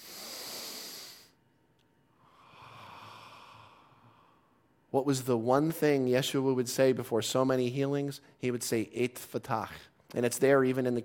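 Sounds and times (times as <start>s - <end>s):
deep breath in through the nose: 0.0s - 1.4s, 2.2s - 4.5s
speech: 4.9s - 11.0s.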